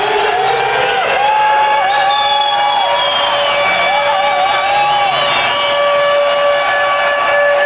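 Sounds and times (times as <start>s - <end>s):
air-raid style siren at a 2010 show in São Paulo: 0.0s - 7.6s
concert crowd roaring, cheering and whooping: 0.0s - 7.6s.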